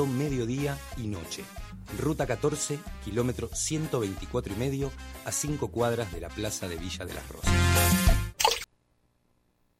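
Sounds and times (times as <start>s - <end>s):
speech: 0.0s - 8.3s
water dripping in hollow resonant plops: 8.4s - 8.7s.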